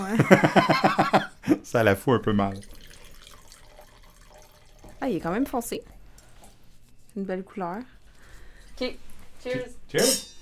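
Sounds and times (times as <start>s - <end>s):
laughter: 0.0s - 1.6s
speech: 0.1s - 1.1s, 1.7s - 2.9s, 5.0s - 6.0s, 7.2s - 8.0s, 8.8s - 10.4s
wine pouring into a glass: 2.1s - 5.7s.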